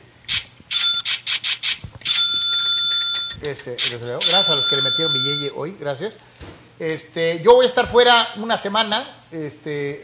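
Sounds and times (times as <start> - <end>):
cash register ding sound effect: 0.7 - 1.3, 2.1 - 3.5, 4.2 - 5.5
speech: 3.4 - 10.0.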